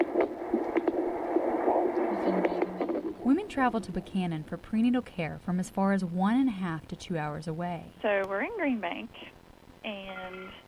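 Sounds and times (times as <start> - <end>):
fetal heartbeat on a Doppler monitor: 0.0 - 4.8
Doppler monitor static hiss: 0.0 - 10.6
speech: 3.3 - 10.6.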